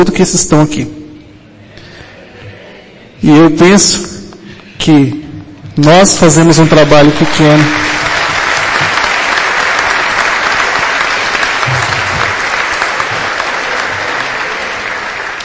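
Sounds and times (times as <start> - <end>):
speech: 0.0 - 1.0, 3.2 - 4.1, 4.8 - 5.2, 5.8 - 7.9
audience applause: 6.6 - 15.4.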